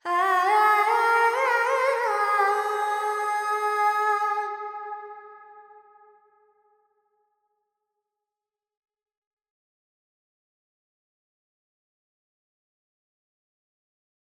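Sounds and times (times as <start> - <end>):
woman singing Carnatic pentatonic alap in G: 0.0 - 4.8.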